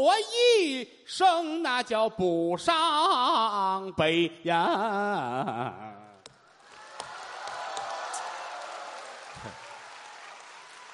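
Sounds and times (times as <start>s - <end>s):
speech: 0.0s - 6.0s
applause: 6.6s - 10.9s.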